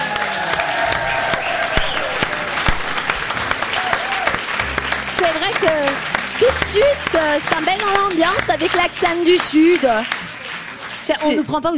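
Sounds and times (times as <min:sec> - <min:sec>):
faint cheers or voices: 0:00.0 - 0:06.8
audience applauding: 0:00.0 - 0:11.7
speech: 0:05.6 - 0:10.2, 0:11.1 - 0:11.7.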